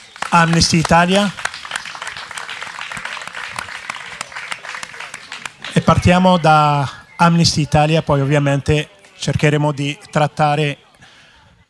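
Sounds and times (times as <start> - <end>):
audience applause: 0.0 - 6.5
speech: 0.3 - 1.4, 5.8 - 10.8.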